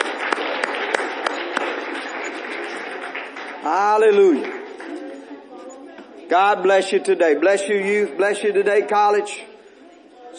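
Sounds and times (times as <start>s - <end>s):
audience applause: 0.0s - 5.0s
speech: 3.7s - 4.6s, 6.3s - 9.5s.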